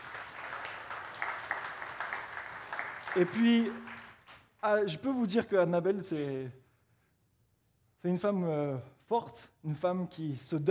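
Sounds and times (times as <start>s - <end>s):
audience applause: 0.0s - 4.5s
speech: 3.1s - 3.9s, 4.6s - 6.6s, 8.0s - 10.6s.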